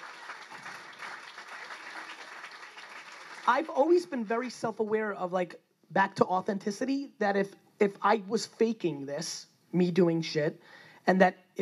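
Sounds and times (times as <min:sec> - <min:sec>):
audience round of applause: 0:00.0 - 0:04.2
speech: 0:03.5 - 0:11.5.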